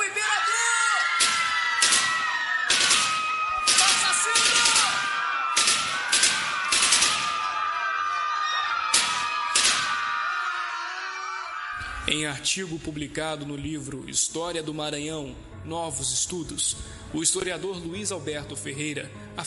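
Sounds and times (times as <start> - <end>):
crowd noise and voices: 0.0 - 12.4
rifle volley fired into a crowd: 1.2 - 7.5, 8.9 - 10.0
speech: 12.1 - 19.4.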